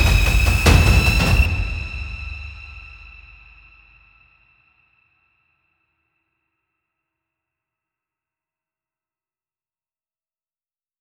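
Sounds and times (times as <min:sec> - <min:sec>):
dramatic drum: 0:00.0 - 0:03.9.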